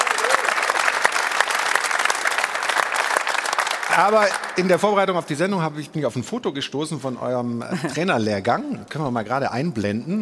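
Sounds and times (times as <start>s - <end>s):
audience applause: 0.0s - 5.4s
speech: 4.0s - 10.2s.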